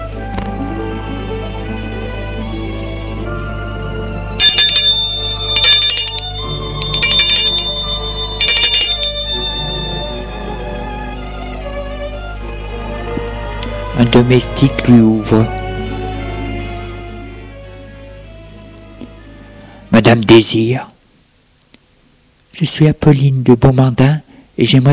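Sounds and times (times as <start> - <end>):
steady music: 0.0 - 20.5
doorbell ringing: 4.4 - 10.5
speech: 14.2 - 15.6, 20.2 - 20.9, 22.6 - 24.9.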